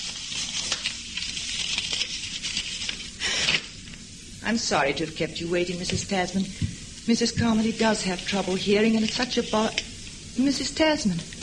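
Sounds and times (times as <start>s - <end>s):
newspaper being unfolded: 0.0s - 3.8s, 7.4s - 9.9s
speech: 4.5s - 11.4s.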